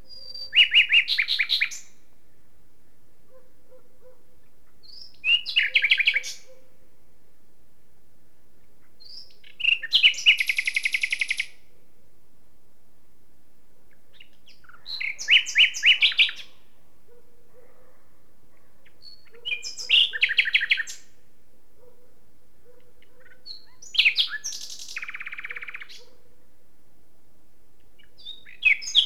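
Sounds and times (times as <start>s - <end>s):
common nightingale Luscinia megarhynchos song: 0.0s - 6.9s, 8.3s - 12.0s, 13.8s - 17.7s, 18.5s - 22.0s, 22.6s - 26.3s, 27.8s - 29.0s.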